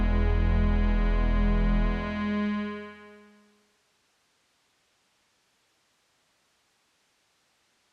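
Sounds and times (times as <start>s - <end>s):
dreamy synth: 0.0s - 3.5s.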